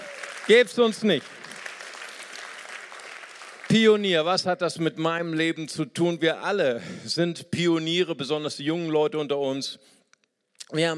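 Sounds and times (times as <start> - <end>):
audience applause: 0.0 - 4.3
speech: 0.5 - 1.4, 3.7 - 10.0, 10.7 - 10.9.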